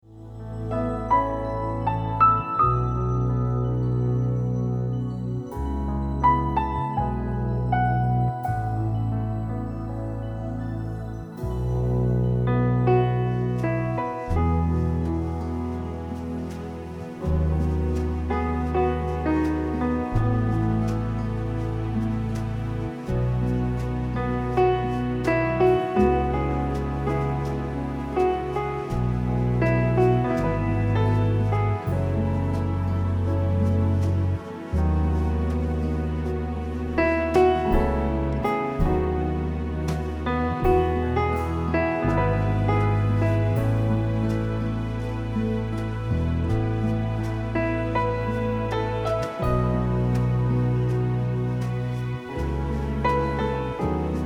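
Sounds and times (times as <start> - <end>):
instrumental music: 0.0 - 54.2.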